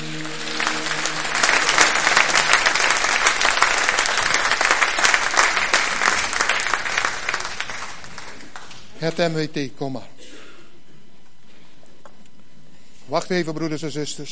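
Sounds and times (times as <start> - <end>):
audience applause: 0.0 - 8.9
speech: 9.1 - 10.2, 13.1 - 14.3.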